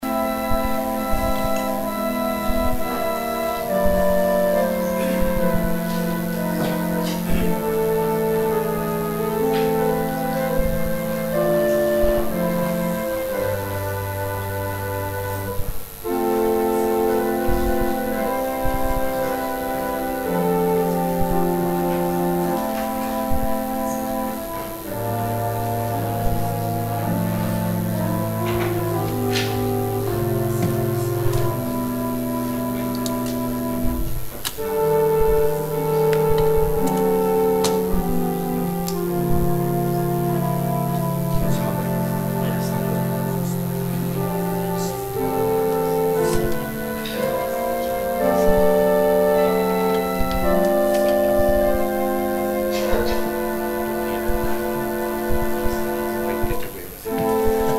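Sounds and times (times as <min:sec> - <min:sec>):
organ interlude: 0:00.0 - 0:57.7.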